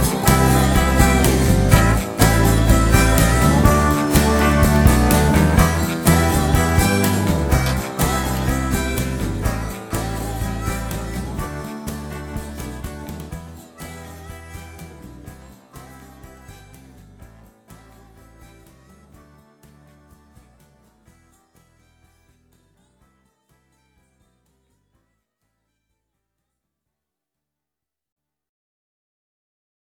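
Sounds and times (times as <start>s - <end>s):
acoustic worship music: 0.0s - 21.1s.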